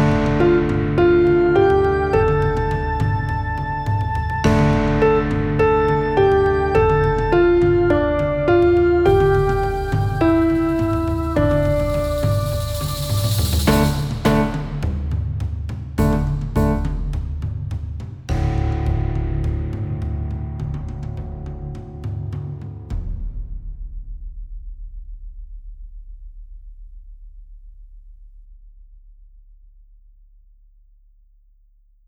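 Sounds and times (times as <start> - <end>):
slow forest drums: 0.0 - 26.5.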